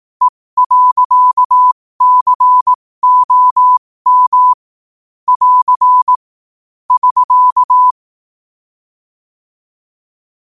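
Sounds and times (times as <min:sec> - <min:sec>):
morse code at 5 wpm: 0:00.6 - 0:04.6, 0:05.3 - 0:06.2, 0:06.9 - 0:08.0.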